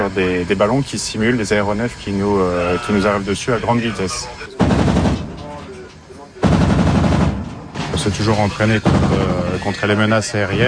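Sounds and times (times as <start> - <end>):
speech: 0.1 - 4.9, 8.0 - 10.6
naval cannon and machine gun firing: 4.6 - 5.5, 6.4 - 7.7, 8.8 - 9.6.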